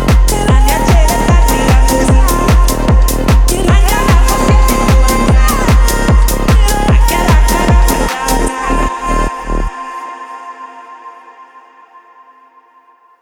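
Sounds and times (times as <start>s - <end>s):
techno music: 0.0s - 9.9s.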